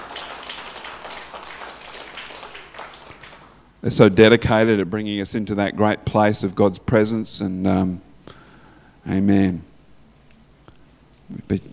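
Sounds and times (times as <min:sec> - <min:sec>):
audience clapping for the team: 0:00.0 - 0:03.7
speech: 0:03.8 - 0:08.1, 0:09.0 - 0:09.7, 0:11.3 - 0:11.7.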